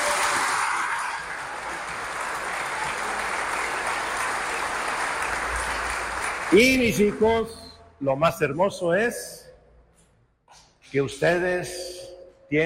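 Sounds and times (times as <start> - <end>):
audience applause: 0.0 - 7.3
speech: 6.5 - 9.4, 10.9 - 11.9.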